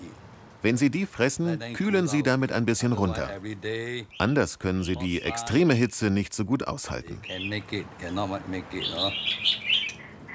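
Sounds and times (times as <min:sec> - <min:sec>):
speech: 0:00.6 - 0:09.7
many birds chirping and singing in a front garden: 0:04.0 - 0:05.6, 0:07.0 - 0:10.3.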